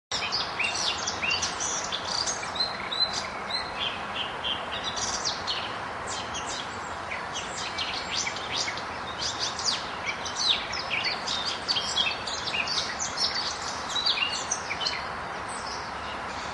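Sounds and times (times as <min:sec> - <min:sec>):
Eurasian blackcap song at Zakole Wawerskie, Warsaw: 0:00.1 - 0:16.5.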